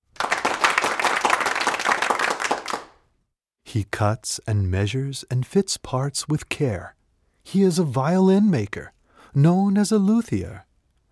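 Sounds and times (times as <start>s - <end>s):
applause: 0.0s - 3.0s
speech: 3.7s - 10.7s.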